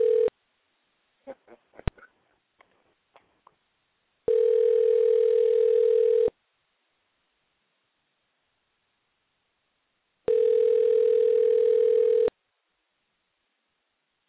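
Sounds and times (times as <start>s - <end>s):
telephone ringback tone on a call: 0.0s - 0.3s, 4.3s - 6.3s, 10.3s - 12.3s.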